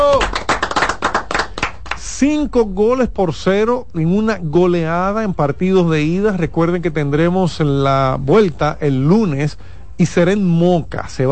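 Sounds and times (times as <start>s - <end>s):
applause: 0.0s - 2.2s
speech: 2.2s - 11.2s.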